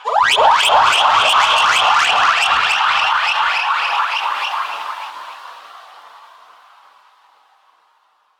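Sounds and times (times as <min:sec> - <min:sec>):
reversed laser effect: 0:00.0 - 0:05.3.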